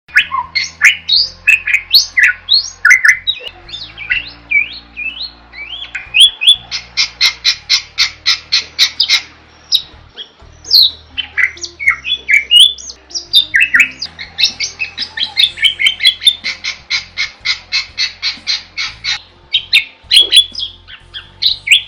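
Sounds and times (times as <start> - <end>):
bird singing loudly in a masteran training recording: 0.1 - 21.8.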